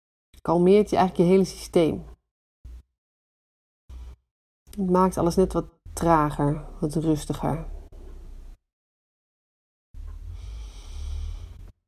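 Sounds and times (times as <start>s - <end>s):
speech: 0.4s - 2.1s, 4.8s - 7.8s
slow deliberate breathing in a calming exercise: 10.1s - 11.8s.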